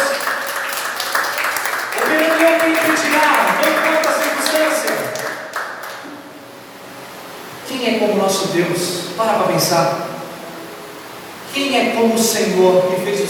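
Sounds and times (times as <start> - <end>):
audience applause: 0.0 - 6.1
speech: 2.4 - 4.8, 7.8 - 10.0, 11.6 - 13.2.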